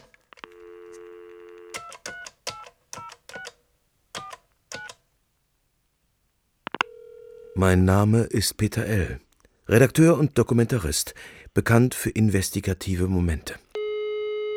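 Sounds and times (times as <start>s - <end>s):
telephone dial tone: 0.0s - 3.5s, 6.7s - 7.6s
speech: 7.6s - 13.6s.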